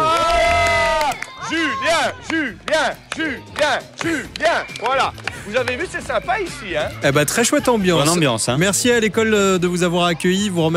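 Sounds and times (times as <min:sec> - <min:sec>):
children applauding: 0:00.0 - 0:05.9
speech: 0:02.0 - 0:10.7.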